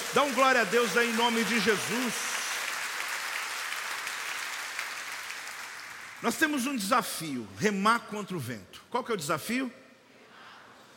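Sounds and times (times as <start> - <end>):
audience applauding: 0.0 - 6.4
speech: 0.1 - 2.4, 6.2 - 9.8.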